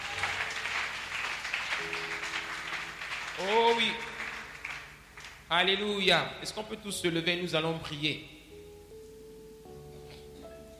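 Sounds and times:
church congregation applauding: 0.0s - 6.0s
speech: 3.4s - 4.1s, 5.5s - 8.4s.

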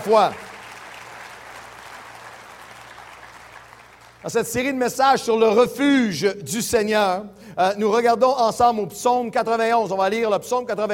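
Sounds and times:
speech: 0.0s - 0.4s, 4.2s - 10.9s
audience applauding: 0.0s - 4.3s.

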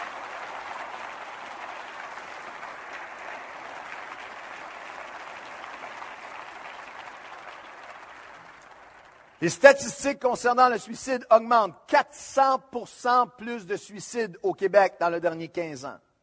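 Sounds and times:
large congregation applauding at a morning service to welcome teenagers: 0.0s - 11.7s
speech: 9.4s - 16.1s.

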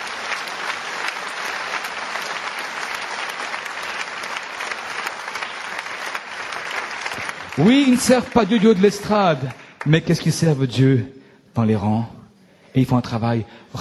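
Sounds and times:
audience applause: 0.0s - 10.5s
speech: 7.6s - 13.7s.

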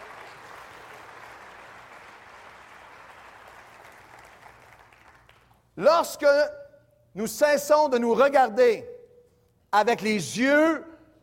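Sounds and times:
audience applause: 0.0s - 5.6s
speech: 5.8s - 6.6s, 7.2s - 8.9s, 9.7s - 10.9s.

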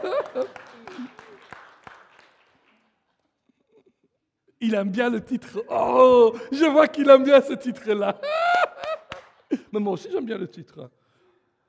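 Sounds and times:
laughter: 0.0s - 1.5s, 7.9s - 9.7s
brief smattering of audience applause: 0.0s - 2.9s
speech: 0.2s - 1.3s, 4.6s - 8.4s, 9.7s - 11.0s.

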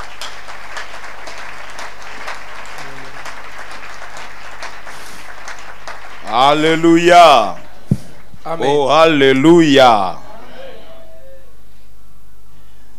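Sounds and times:
church congregation applauding during a service: 0.0s - 8.9s
speech: 6.3s - 7.6s, 8.4s - 10.2s.

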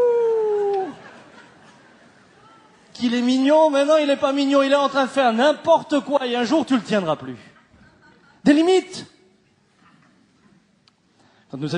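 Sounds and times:
person imitating a wolf howl: 0.0s - 0.9s
laughter: 0.6s - 2.4s
speech: 3.0s - 7.5s, 8.5s - 9.1s, 11.5s - 11.7s.

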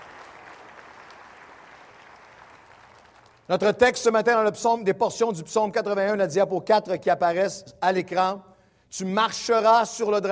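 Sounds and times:
audience applauding loudly: 0.0s - 3.5s
speech: 3.5s - 10.2s.

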